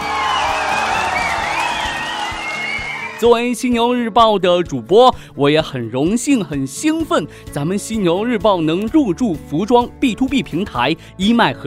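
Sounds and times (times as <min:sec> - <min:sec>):
applause and cheering: 0:00.0 - 0:03.4
speech: 0:03.2 - 0:11.6.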